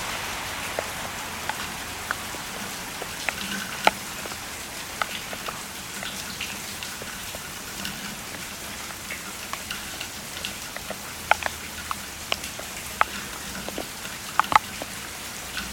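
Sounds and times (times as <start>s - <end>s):
faint low traffic rumble: 0.0s - 15.7s
rain falling during Hurricane Hillary in LA: 0.0s - 15.7s.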